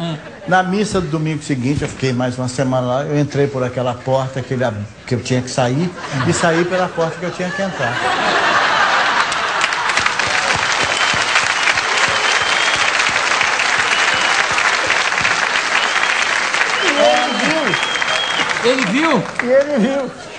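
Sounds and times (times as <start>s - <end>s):
speech: 0.1s - 8.4s, 18.6s - 20.3s
laughter: 6.0s - 11.3s, 16.8s - 17.9s
audience applause: 8.3s - 20.3s.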